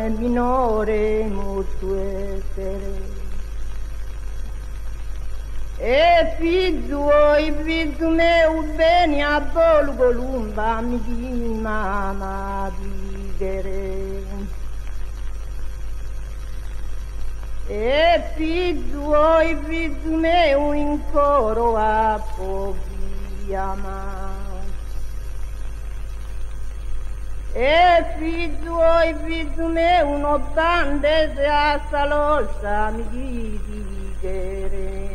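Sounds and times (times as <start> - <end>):
unaccompanied monodic chant: 0.0 - 3.2, 5.8 - 14.5, 17.7 - 24.7, 27.5 - 35.1.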